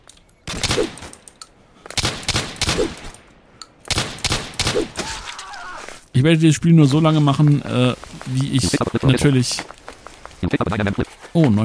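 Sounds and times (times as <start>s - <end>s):
gunfire in a video game: 2.0s - 3.1s, 3.9s - 5.0s
speech: 6.2s - 9.8s, 10.4s - 11.6s.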